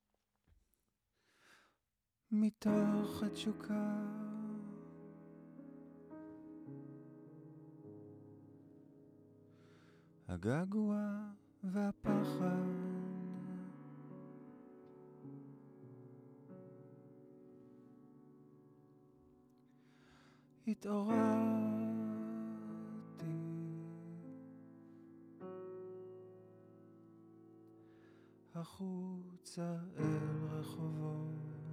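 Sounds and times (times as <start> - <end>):
vocals: 2.3 - 5.3, 10.2 - 14.5, 20.5 - 25.0, 28.4 - 31.7.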